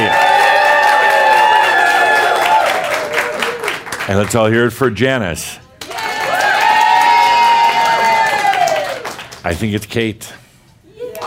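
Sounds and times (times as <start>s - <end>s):
voices cheering: 0.0s - 3.8s, 5.8s - 9.1s
audience clapping at a live event: 0.0s - 4.5s, 5.8s - 9.7s
speech: 4.1s - 5.6s, 9.4s - 10.4s.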